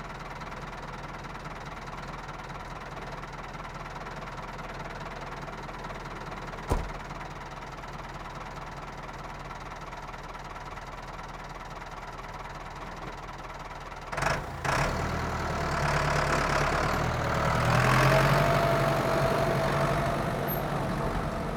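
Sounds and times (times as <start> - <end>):
Ford 7610 farm tractor engine: 14.2 - 21.5.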